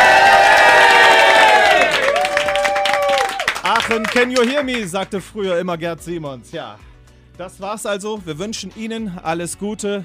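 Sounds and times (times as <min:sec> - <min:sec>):
group of colleagues cheering in studio: 0:00.0 - 0:04.8
speech: 0:03.9 - 0:10.0.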